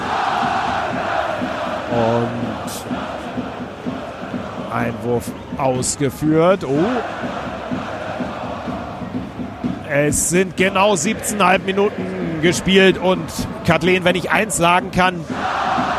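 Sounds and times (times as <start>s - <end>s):
Erzgebirge Aue fans stadium crowd roar at a third-division football match: 0.0s - 15.9s
speech: 1.9s - 2.5s, 4.8s - 7.6s, 9.9s - 15.5s
man commentating: 1.9s - 2.8s, 4.7s - 7.0s, 9.9s - 15.2s.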